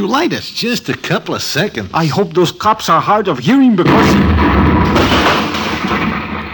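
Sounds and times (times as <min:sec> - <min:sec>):
speech: 0:00.0 - 0:04.6
bomb explosion: 0:03.8 - 0:06.5.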